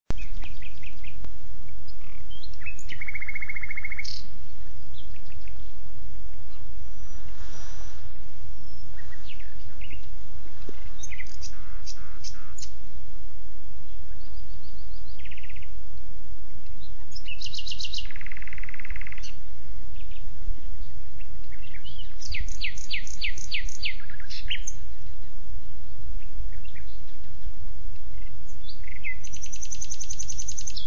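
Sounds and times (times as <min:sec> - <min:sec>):
common nightingale song: 0:00.1 - 0:13.1, 0:13.7 - 0:15.9, 0:16.6 - 0:25.4, 0:26.1 - 0:30.8
low rumble: 0:04.2 - 0:17.2.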